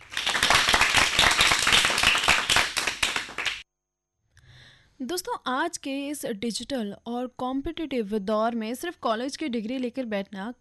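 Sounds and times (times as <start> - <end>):
loud applause: 0.0 - 3.6
speech: 5.0 - 10.5.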